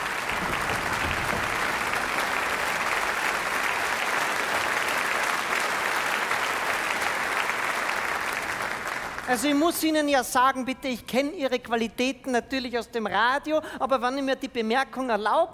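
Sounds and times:
audience applause: 0.0 - 9.8
speech: 9.3 - 15.5.

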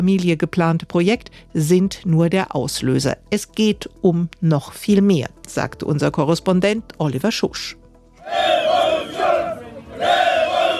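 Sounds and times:
speech: 0.0 - 8.5
street demonstration crowd chanting: 8.2 - 10.7.

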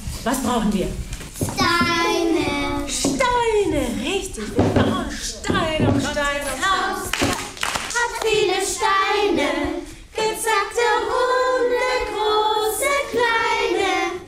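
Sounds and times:
speech: 0.2 - 7.1
children singing a bright song: 5.8 - 14.2
children clapping along: 7.0 - 8.4.

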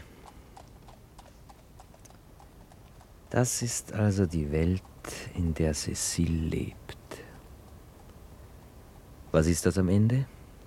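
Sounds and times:
hooves of a horse pulling a horse-drawn tram: 0.0 - 7.0
constant low rumble: 0.0 - 10.6
speech: 3.3 - 6.8, 9.3 - 10.4.

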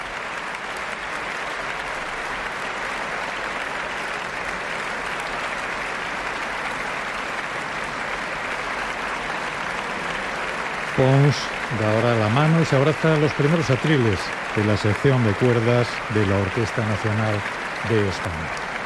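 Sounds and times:
concert audience applause: 0.0 - 18.8
speech: 11.0 - 18.7.

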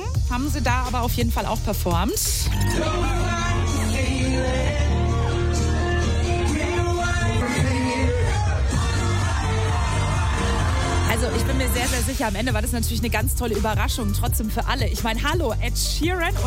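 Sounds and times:
speech: 0.3 - 3.3, 11.2 - 16.4
wedding guests cheering: 2.5 - 12.0.

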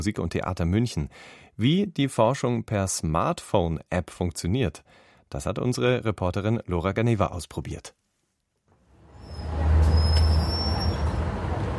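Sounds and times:
speech: 0.0 - 8.0
crowded Munich Stammstrecke commuter rail at morning rush: 9.1 - 11.7.

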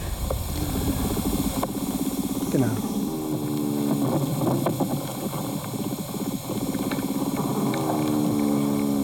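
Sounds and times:
vibration sounds of a larger soil animal: 0.0 - 9.0
speech: 2.6 - 2.9.

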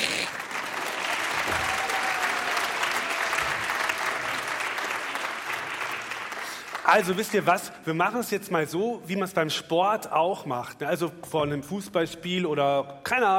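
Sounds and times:
audience clapping: 0.0 - 7.6
speech: 6.9 - 13.3.

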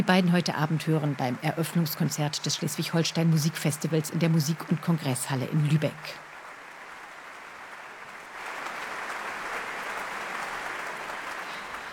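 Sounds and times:
speech: 0.0 - 6.3
large audience applause: 0.0 - 11.9.

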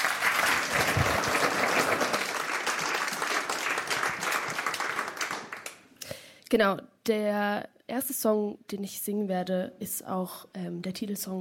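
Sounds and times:
crowd applauding: 0.0 - 5.9
speech: 6.5 - 11.3.

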